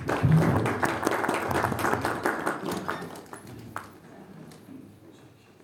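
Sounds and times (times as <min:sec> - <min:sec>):
audience applause: 0:00.0 - 0:04.0.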